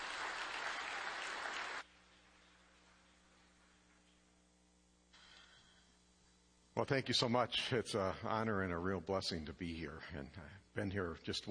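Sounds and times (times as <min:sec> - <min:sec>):
audience applause welcoming a speaker at a morning gathering: 0:00.0 - 0:01.8
speech: 0:06.8 - 0:11.5.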